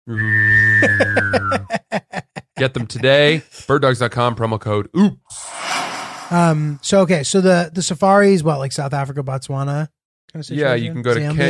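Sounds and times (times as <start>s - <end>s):
speech: 0.1s - 1.6s, 2.6s - 5.7s, 6.3s - 11.4s
whistling football toy: 0.1s - 1.6s
laughter: 1.1s - 3.0s.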